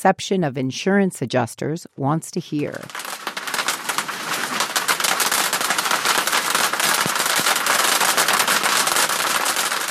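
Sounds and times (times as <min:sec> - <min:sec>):
speech: 0:00.0 - 0:03.1
hailstorm in Metro Denver: 0:02.8 - 0:09.8.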